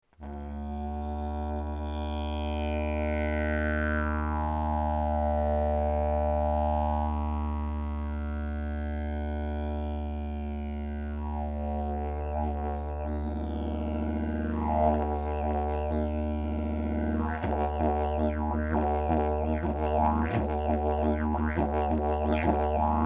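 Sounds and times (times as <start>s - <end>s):
didgeridoo: 0.2s - 23.0s.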